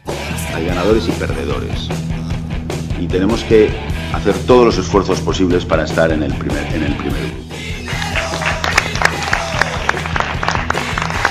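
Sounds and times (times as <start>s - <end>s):
speech: 0.6s - 2.1s, 3.0s - 7.4s
audience applause: 7.9s - 11.2s.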